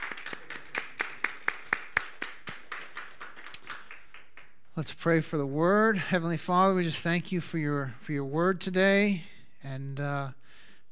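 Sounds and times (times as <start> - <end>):
small crowd clapping: 0.0 - 4.7
speech: 4.8 - 10.4.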